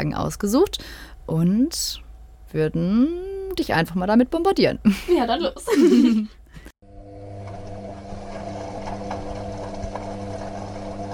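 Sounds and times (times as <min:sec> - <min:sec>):
speech: 0:00.0 - 0:06.4
laughter: 0:04.9 - 0:06.3
washing machine on its spin cycle: 0:06.8 - 0:11.1.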